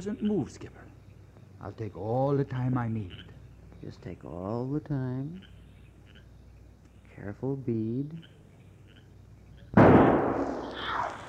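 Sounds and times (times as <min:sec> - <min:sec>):
speech: 0:00.0 - 0:00.9, 0:01.6 - 0:05.5, 0:07.2 - 0:08.3
gunshot in a radio drama: 0:09.8 - 0:11.2.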